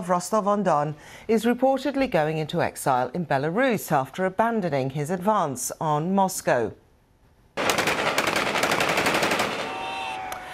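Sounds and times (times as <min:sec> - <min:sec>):
speech: 0:00.0 - 0:06.8
Wagner forces firing guns into the sky: 0:07.6 - 0:10.4.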